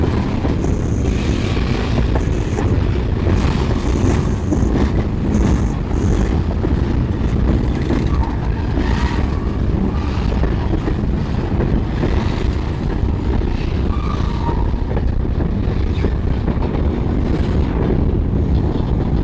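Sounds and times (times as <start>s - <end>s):
trains: 0.0s - 19.2s.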